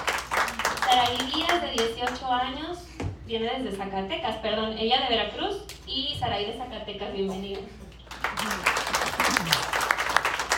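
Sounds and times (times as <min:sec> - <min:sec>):
audience applauding: 0:00.0 - 0:01.4, 0:08.1 - 0:10.5
speech: 0:01.0 - 0:07.8.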